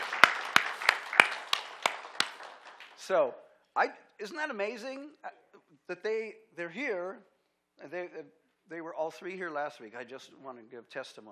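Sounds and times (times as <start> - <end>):
audience clapping: 0.0 - 3.3
speech: 3.1 - 11.3.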